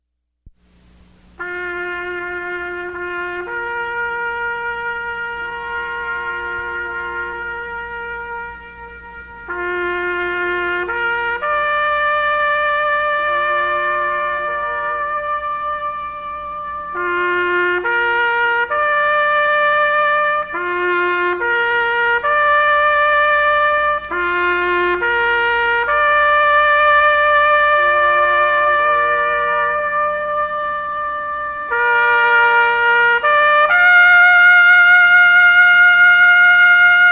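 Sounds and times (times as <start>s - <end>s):
bugle call: 1.4s - 37.0s.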